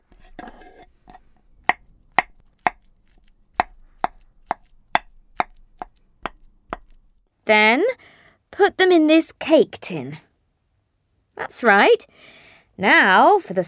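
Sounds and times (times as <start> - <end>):
banana peel rustling: 0.0 - 7.2
knife slicing bananas on a board: 0.1 - 7.1
speech: 7.5 - 10.2, 11.4 - 13.6.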